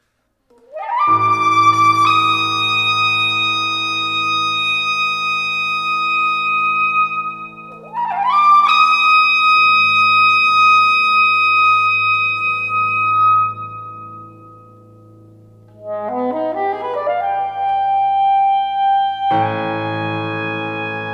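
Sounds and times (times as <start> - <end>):
saxophone: 0.5 - 21.1.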